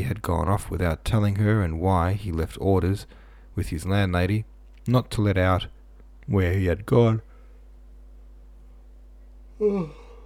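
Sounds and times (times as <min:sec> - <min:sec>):
speech: 0:00.1 - 0:07.3, 0:09.6 - 0:10.0
person yawning: 0:09.6 - 0:10.2.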